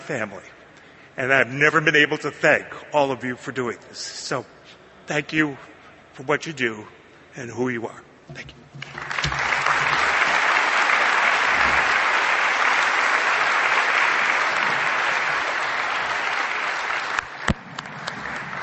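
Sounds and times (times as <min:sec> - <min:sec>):
speech: 0:00.1 - 0:00.6, 0:01.2 - 0:09.1
audience applause: 0:08.8 - 0:18.6.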